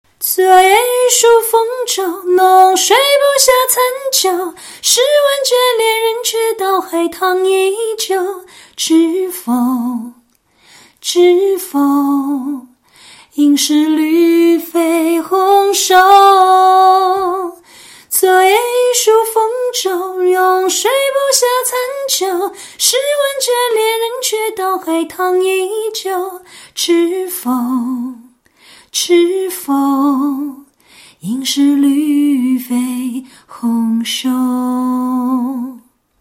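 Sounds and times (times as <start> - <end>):
person singing a cappella: 0.2 - 10.3, 10.9 - 36.0.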